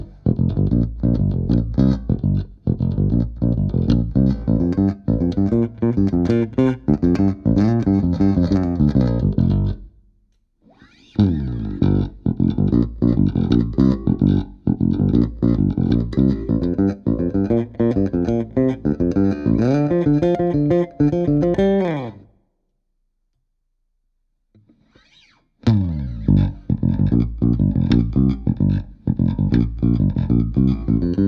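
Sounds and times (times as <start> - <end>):
cherry burst bass guitar: 0.0 - 10.0, 10.9 - 22.3, 25.6 - 31.2.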